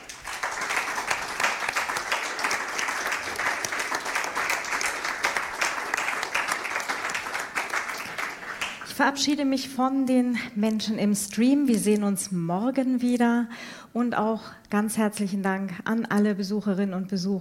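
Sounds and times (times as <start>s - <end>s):
audience applause: 0.0s - 8.9s
speech: 9.0s - 17.3s.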